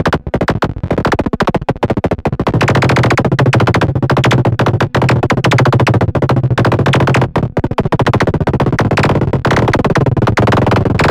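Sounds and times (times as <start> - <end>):
synth: 0.1 - 11.0.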